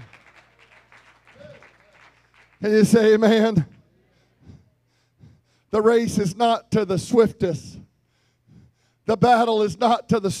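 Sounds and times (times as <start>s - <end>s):
audience clapping: 0.0s - 3.8s
speech: 2.6s - 3.7s, 5.8s - 7.8s, 9.1s - 10.3s.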